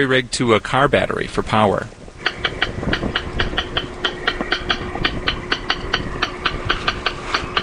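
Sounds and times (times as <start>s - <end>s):
speech: 0.0s - 2.0s
recorded rail bird calls from a speaker: 2.2s - 7.6s.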